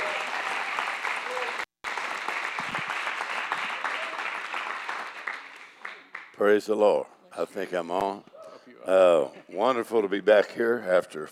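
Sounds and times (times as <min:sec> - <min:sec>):
church congregation applause welcoming a pastor couple: 0:00.0 - 0:06.4
speech: 0:06.4 - 0:11.3.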